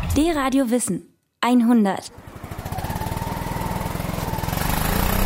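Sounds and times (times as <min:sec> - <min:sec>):
speech: 0:00.1 - 0:02.3
Jeep driving through a steppe in Tansania: 0:02.1 - 0:05.2.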